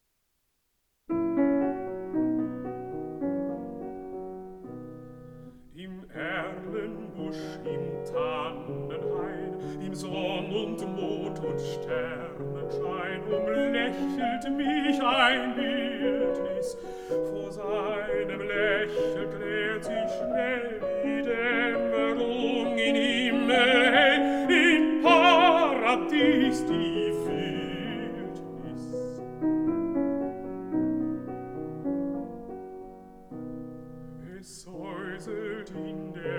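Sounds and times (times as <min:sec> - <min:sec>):
piano: 0:01.0 - 0:36.3
person singing: 0:05.7 - 0:29.4, 0:34.2 - 0:36.3.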